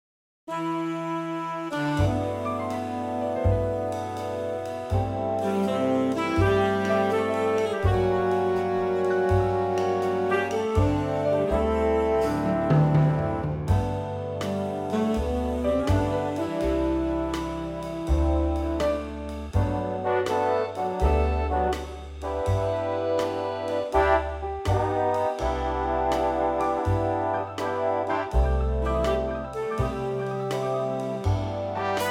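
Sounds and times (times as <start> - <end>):
big band: 0.5 - 32.0.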